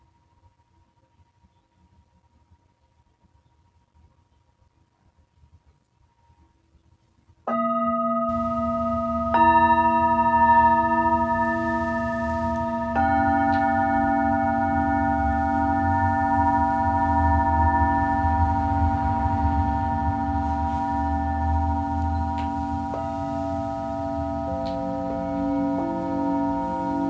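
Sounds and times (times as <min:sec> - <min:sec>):
low hum: 0:00.0 - 0:27.0
Tibetan singing bowls ringing: 0:07.5 - 0:27.0.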